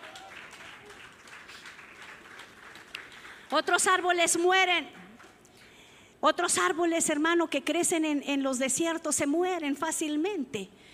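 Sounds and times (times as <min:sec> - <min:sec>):
audience clapping: 0:00.0 - 0:04.4, 0:05.0 - 0:05.6
speech: 0:03.5 - 0:05.0, 0:06.2 - 0:10.9.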